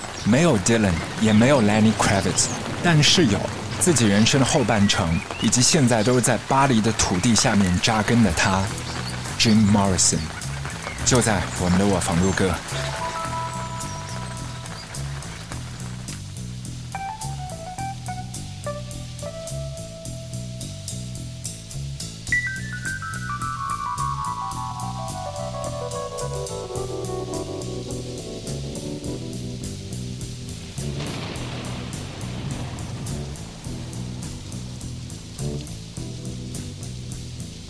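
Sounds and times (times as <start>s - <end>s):
heavy rain: 0.0s - 37.6s
speech: 0.2s - 8.8s, 9.4s - 10.4s, 11.1s - 13.0s
mellow electric keyboard music: 11.0s - 15.3s, 16.9s - 21.5s, 22.3s - 31.2s.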